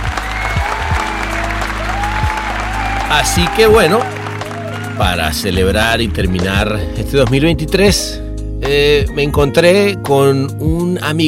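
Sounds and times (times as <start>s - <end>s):
crowd applauding: 0.0s - 6.6s
speech: 3.1s - 4.2s, 5.0s - 11.2s.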